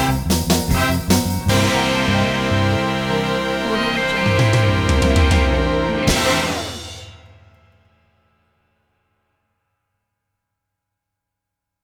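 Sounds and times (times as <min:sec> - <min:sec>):
swing music: 0:00.0 - 0:07.3.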